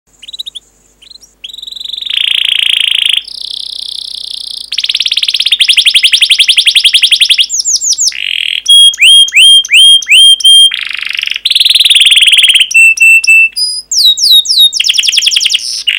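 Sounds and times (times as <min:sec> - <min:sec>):
canary song: 0:00.1 - 0:15.9.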